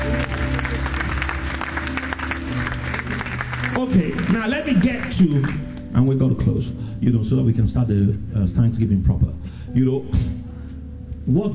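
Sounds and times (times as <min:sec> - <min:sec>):
audience clapping: 0:00.0 - 0:05.9
low musical hum: 0:00.0 - 0:11.5
speech: 0:03.9 - 0:10.4, 0:11.2 - 0:11.5.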